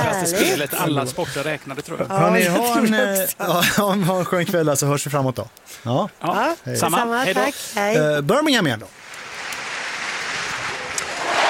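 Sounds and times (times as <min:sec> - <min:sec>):
speech: 0:00.2 - 0:09.0
stadium crowd cheering at Alexander Stadium: 0:10.7 - 0:11.4.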